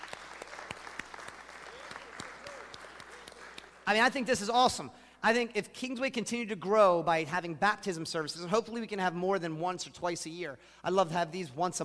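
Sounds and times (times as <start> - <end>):
audience clapping: 0.0 - 3.9
speech: 3.9 - 11.8.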